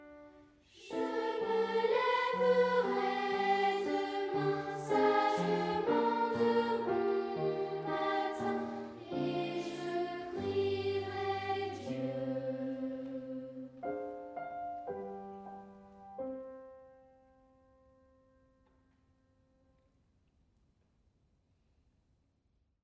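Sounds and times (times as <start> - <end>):
piano: 0.0 - 19.8.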